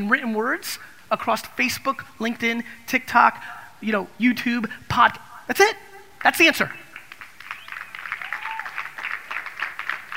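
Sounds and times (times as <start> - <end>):
speech: 0.0 - 6.8
scattered audience clapping: 6.2 - 10.1.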